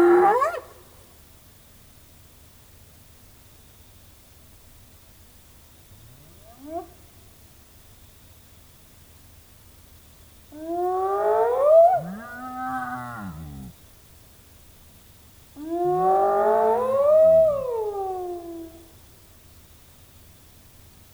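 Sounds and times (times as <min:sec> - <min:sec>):
hyena calling: 0:10.6 - 0:13.8, 0:15.6 - 0:18.9.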